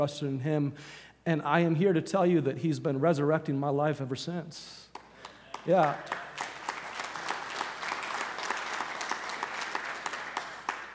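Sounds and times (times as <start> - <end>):
speech: 0.0 - 5.0, 5.6 - 6.2
audience clapping: 4.9 - 10.9.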